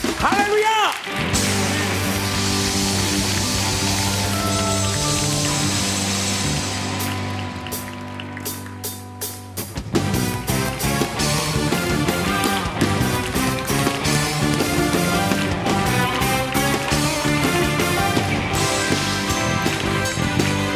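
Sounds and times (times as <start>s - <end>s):
audience applause: 0.0s - 9.2s, 9.8s - 20.7s.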